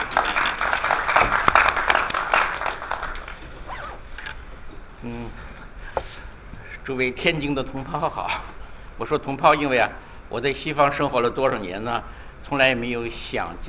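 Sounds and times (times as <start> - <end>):
audience applause: 0.0 - 3.4
speech: 6.9 - 13.6.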